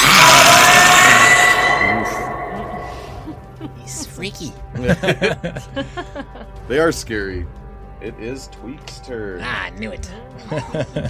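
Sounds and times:
voice imitating a banshee's scream: 0:00.0 - 0:03.2
laughter: 0:02.8 - 0:03.9, 0:04.7 - 0:06.6, 0:10.4 - 0:11.0
speech: 0:04.2 - 0:11.0.

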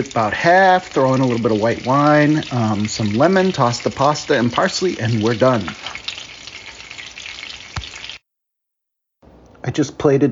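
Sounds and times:
speech: 0:00.0 - 0:05.9, 0:09.6 - 0:10.2
geoduck frying in oil in pan: 0:00.0 - 0:08.2.

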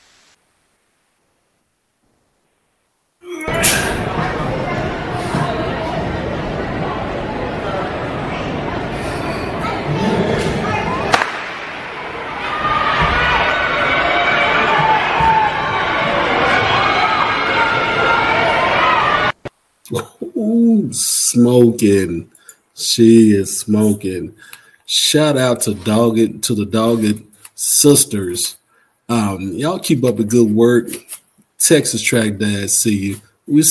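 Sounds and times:
crowd cheering at a 60-meter track race, played from a video: 0:03.2 - 0:19.4
speech: 0:21.3 - 0:33.6.

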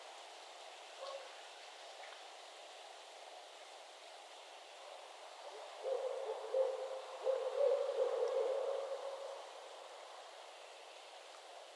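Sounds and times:
faint background noise: 0:00.0 - 0:11.7
owl hooting: 0:05.8 - 0:09.0.

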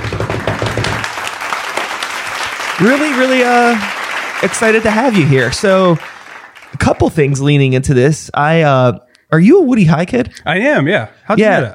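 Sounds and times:
live audience applause welcoming a guest to the stage: 0:00.0 - 0:07.5
speech: 0:02.8 - 0:06.1, 0:06.8 - 0:11.7.

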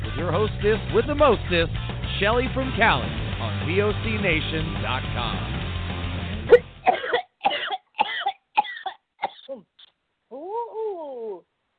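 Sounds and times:
speech: 0:00.2 - 0:05.6
person coughing after smoking: 0:06.5 - 0:09.7.

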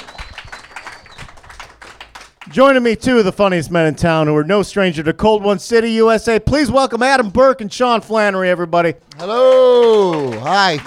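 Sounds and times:
audience applause at the Lincoln Lodge Theater: 0:00.0 - 0:02.5, 0:09.2 - 0:10.8
speech: 0:02.5 - 0:10.8.

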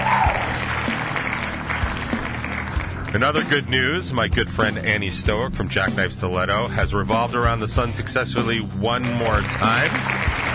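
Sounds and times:
canned applause sound effect from button: 0:00.0 - 0:03.7, 0:08.9 - 0:10.5
speech: 0:03.1 - 0:10.2.

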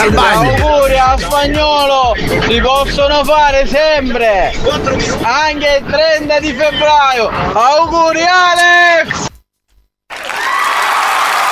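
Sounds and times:
speech: 0:00.0 - 0:09.3
recorded applause sound effect: 0:10.1 - 0:11.5.

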